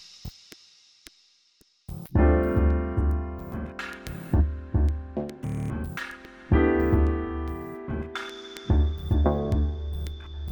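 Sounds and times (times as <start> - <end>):
piano: 2.1 - 10.5.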